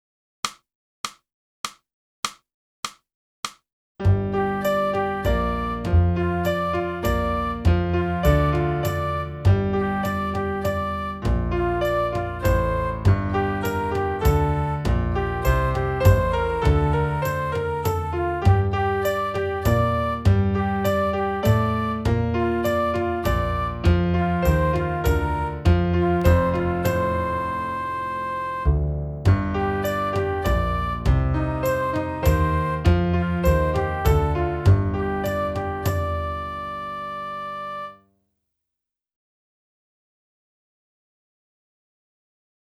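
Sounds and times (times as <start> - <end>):
saxophone: 4.2 - 28.8, 29.6 - 38.0.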